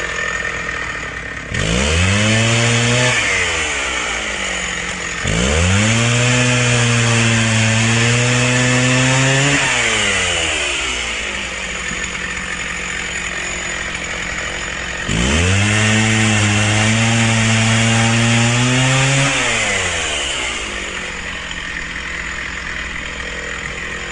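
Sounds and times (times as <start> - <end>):
chainsaw revving and idling: 0.0 - 24.1.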